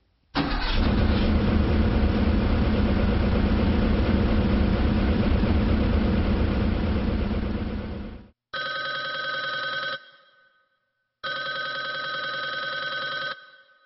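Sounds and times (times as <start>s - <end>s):
car engine cranking and running: 0.4s - 8.3s
telephone bell ringing: 8.6s - 10.6s, 11.2s - 13.8s.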